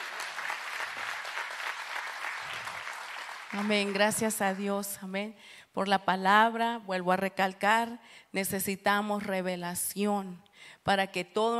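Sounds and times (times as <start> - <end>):
audience applauding: 0.0 - 4.7
speech: 3.5 - 11.5.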